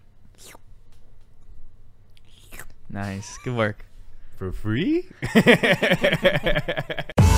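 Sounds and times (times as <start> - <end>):
slurping noises into the microphone: 0.3 - 0.7, 2.2 - 2.8
speech: 2.9 - 7.2
laughter: 5.2 - 7.2.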